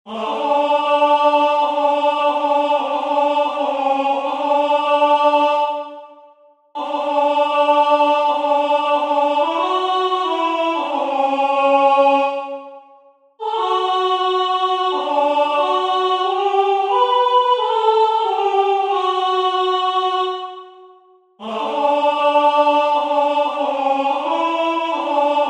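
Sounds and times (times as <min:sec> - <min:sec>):
alto voice singing: 0:00.1 - 0:25.4.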